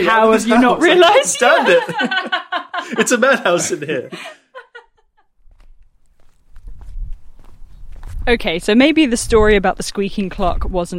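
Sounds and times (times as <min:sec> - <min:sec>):
speech: 0:00.0 - 0:04.4, 0:08.2 - 0:10.9
laughter: 0:00.0 - 0:05.0
footsteps walking across a vegetable garden: 0:05.4 - 0:10.5.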